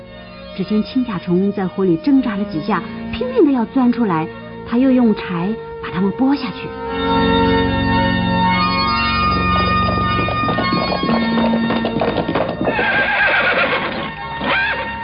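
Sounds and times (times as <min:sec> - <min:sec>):
sustained tonal background: 0:00.0 - 0:15.0
speech: 0:00.6 - 0:07.6
rapid galloping horse hoofbeats: 0:09.3 - 0:15.0
horse whinnying shrilly: 0:10.0 - 0:15.0.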